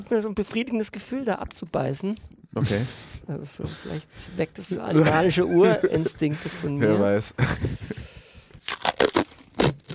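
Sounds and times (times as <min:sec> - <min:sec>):
speech: 0:00.0 - 0:07.9
laughter: 0:04.7 - 0:08.1
heavy-duty military adhesive tape unrolling: 0:08.6 - 0:09.9.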